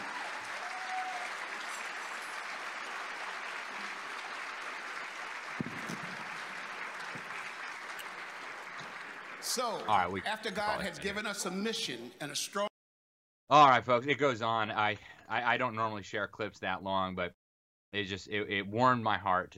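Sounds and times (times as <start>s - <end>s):
crowd applauding: 0.0s - 11.7s
speech: 9.5s - 12.7s, 13.5s - 19.5s.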